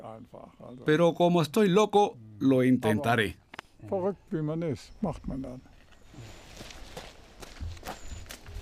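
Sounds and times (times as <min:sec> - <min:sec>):
speech: 0:00.2 - 0:06.4
81-year-old man trotting up stone stairs two at a time: 0:05.8 - 0:08.6.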